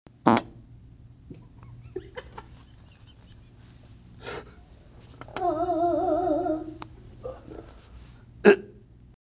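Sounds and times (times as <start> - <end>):
person vocalizing: 5.3 - 7.7, 8.4 - 8.8.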